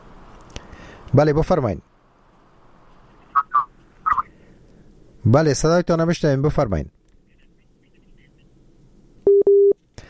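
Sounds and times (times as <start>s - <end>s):
speech: 1.1s - 1.9s, 5.2s - 7.0s
busy tone after phone call disconnects: 9.3s - 9.8s.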